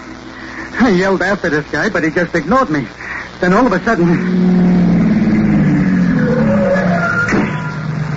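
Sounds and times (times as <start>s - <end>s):
speech: 0.9s - 4.7s
coupe car engine revving and approaching: 4.1s - 8.1s.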